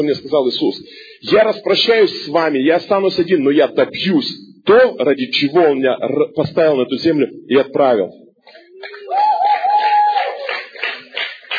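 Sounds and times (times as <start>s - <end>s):
speech: 0.0s - 9.2s
person clapping: 8.5s - 11.5s.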